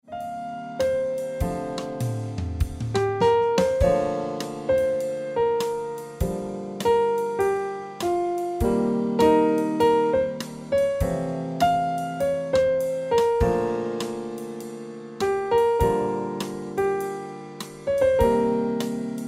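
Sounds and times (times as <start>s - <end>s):
piano music: 0.0s - 19.2s.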